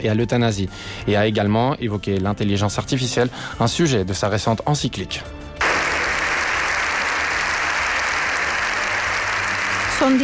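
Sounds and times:
speech: 0.0 - 5.5, 10.0 - 10.2
large crowd applauding in parliament: 5.6 - 10.2.

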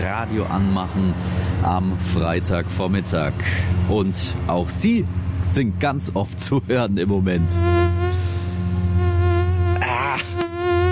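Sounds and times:
speech: 0.1 - 7.8
mosquito buzzing: 7.4 - 10.9.

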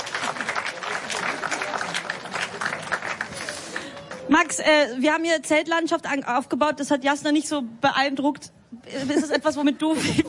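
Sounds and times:
applause: 0.0 - 4.6
speech: 4.3 - 10.2.

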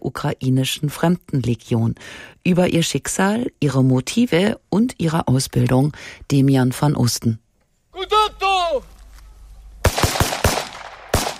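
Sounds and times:
speech: 0.2 - 7.4, 8.0 - 8.9
shouted call at a military training ground: 7.9 - 9.5
gunshots at a military training ground: 9.8 - 11.3.

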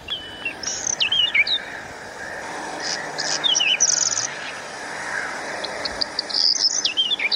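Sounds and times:
hiss: 0.0 - 7.3
small bird's call played from a phone: 0.0 - 7.3.

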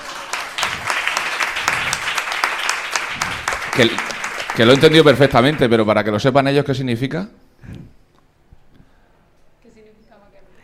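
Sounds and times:
audience applause: 0.0 - 6.0
speech: 3.8 - 7.9.

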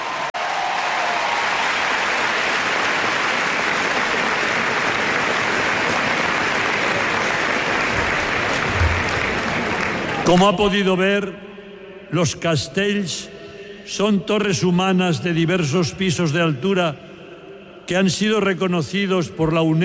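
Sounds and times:
audience applause: 0.0 - 10.5
speech: 10.3 - 11.5, 12.1 - 17.1, 17.9 - 19.8.

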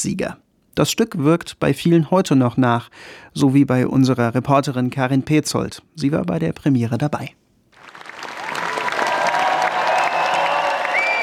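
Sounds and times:
speech: 0.0 - 7.4
premiere audience standing applause: 7.8 - 11.2
faint cheers: 8.2 - 11.2
scattered whistles: 9.8 - 11.2.

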